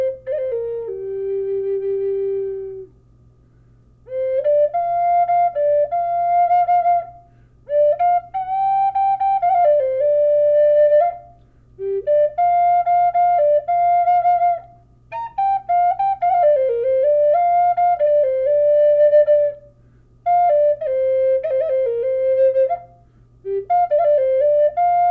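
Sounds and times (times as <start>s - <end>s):
G flute: 0.0s - 3.0s, 4.0s - 25.1s.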